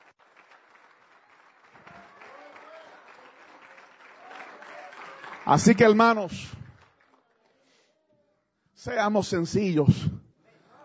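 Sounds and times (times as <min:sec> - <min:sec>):
audience applauding: 0:00.0 - 0:07.6
speech: 0:05.5 - 0:06.6, 0:08.8 - 0:10.2.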